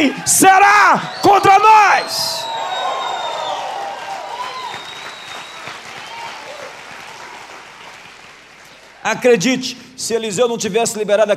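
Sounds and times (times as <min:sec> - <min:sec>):
speech: 0:00.0 - 0:02.4, 0:09.0 - 0:11.3
whoops and high shouts: 0:00.1 - 0:06.8
audience applauding: 0:01.1 - 0:09.1.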